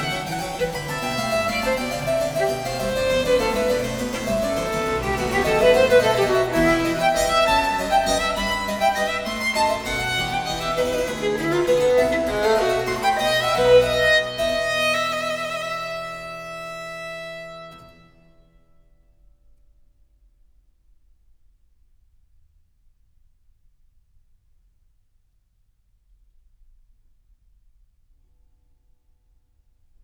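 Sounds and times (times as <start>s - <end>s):
harpsichord playing a sonata: 0.0s - 17.5s
violin playing a sonata: 0.0s - 18.4s.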